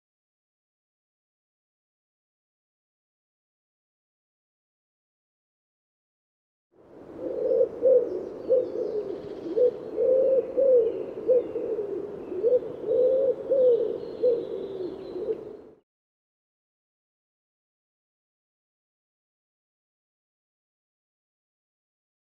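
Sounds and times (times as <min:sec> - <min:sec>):
bird cooing in low soft hooting notes: 0:07.1 - 0:15.8.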